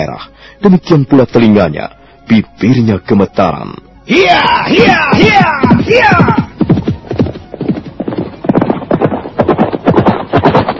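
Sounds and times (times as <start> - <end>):
speech: 0.0 - 6.4
horse galloping away: 4.6 - 10.7.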